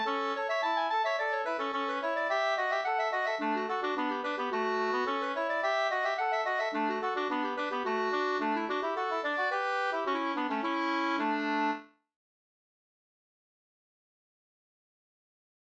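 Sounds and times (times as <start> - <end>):
two-part polska dance tune: 0.0 - 11.8.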